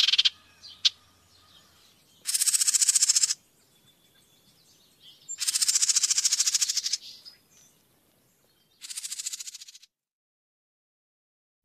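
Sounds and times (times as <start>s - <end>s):
house wren giving short rapid pulsed rattling bursts of high notes: 2.2s - 3.4s, 5.4s - 7.0s, 8.8s - 9.8s.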